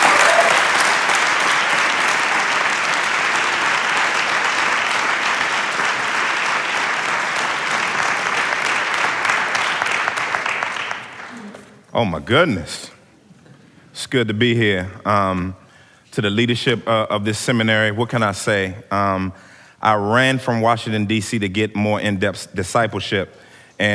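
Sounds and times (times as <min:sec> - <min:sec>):
audience applause welcoming a speaker at a seminary gathering in Dallas: 0:00.0 - 0:11.7
speech: 0:12.0 - 0:13.0, 0:14.0 - 0:15.6, 0:16.2 - 0:23.9.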